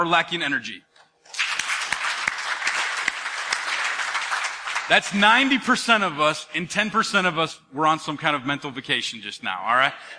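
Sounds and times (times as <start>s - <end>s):
speech: 0.0s - 0.9s, 4.9s - 10.1s
crowd applause: 1.3s - 5.5s.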